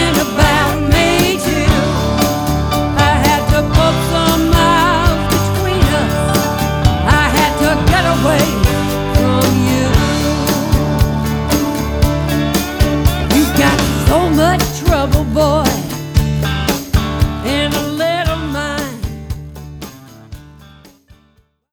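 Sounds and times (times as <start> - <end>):
country singer singing: 0.0 - 20.2.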